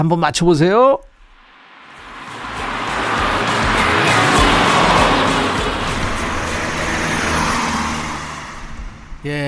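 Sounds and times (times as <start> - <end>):
speech: 0.0 - 1.1, 9.2 - 9.4
car passing by: 1.2 - 9.4
faint music from inside car: 2.0 - 8.6.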